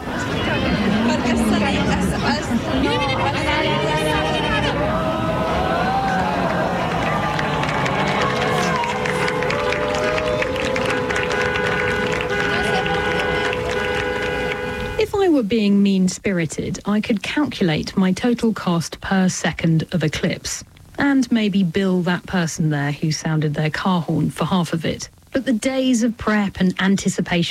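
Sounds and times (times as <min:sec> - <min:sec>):
crowd reacting during a total solar eclipse: 0:00.0 - 0:14.7
speech: 0:00.6 - 0:03.5, 0:15.5 - 0:27.5.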